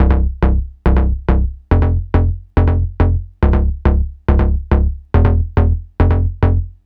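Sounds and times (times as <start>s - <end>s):
NRG trance bass: 0.0s - 6.8s.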